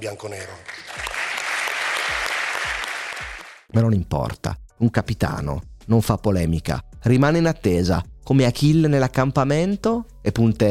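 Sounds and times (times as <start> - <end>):
speech: 0.0 - 0.8, 3.7 - 10.7
audience applause for Alessandro Del Piero at a Juventus event: 0.4 - 3.6.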